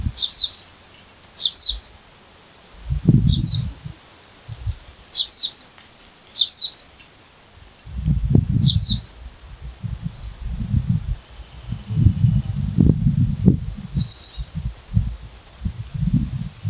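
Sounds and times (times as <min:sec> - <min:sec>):
Cinnyris frenatus sunbird calling: 0:00.0 - 0:02.0, 0:02.8 - 0:05.7, 0:06.3 - 0:07.1, 0:08.6 - 0:09.2, 0:10.1 - 0:16.2.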